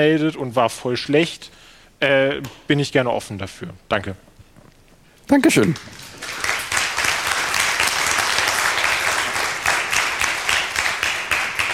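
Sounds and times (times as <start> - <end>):
speech: 0.0 - 4.3, 5.3 - 6.5
applause: 5.5 - 11.7.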